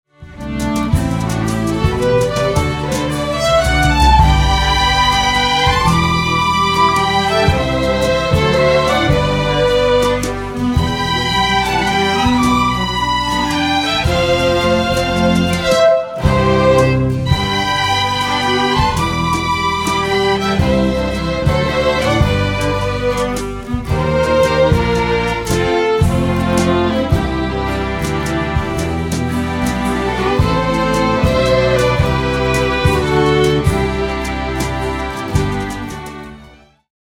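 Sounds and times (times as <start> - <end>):
waltz music: 0.1 - 36.9.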